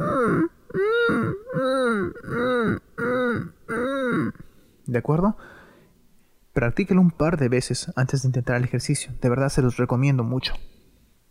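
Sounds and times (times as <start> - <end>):
person making whimpering hums as a vocal exercise: 0.0 - 4.5
speech: 4.9 - 5.5, 6.6 - 10.7.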